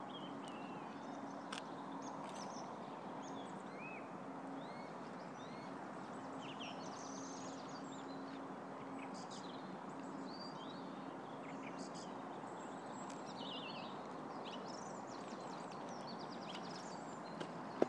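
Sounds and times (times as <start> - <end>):
spring birdsong: 0.0 - 17.8.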